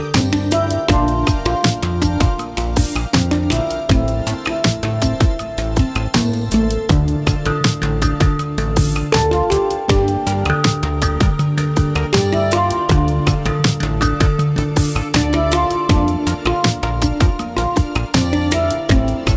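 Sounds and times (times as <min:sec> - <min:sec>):
handpan playing: 0:00.0 - 0:19.3.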